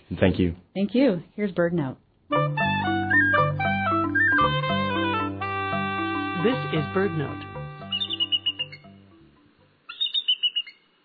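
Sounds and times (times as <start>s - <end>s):
speech: 0.1s - 2.6s, 6.4s - 7.5s
bald eagle calls: 3.0s - 9.1s, 9.9s - 10.9s.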